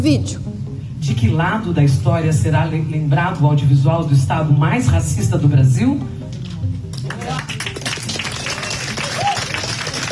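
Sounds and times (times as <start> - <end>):
speech: 0.0 - 6.2
deputies applauding: 6.9 - 10.1.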